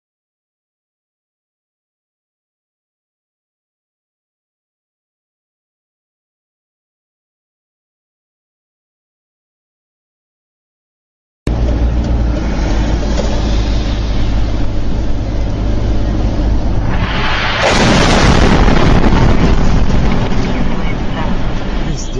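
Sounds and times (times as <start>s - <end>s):
road and wind noise from a car dash cam: 11.5s - 22.1s
missile explosion roar on the Kerch Strait Bridge: 12.8s - 22.0s.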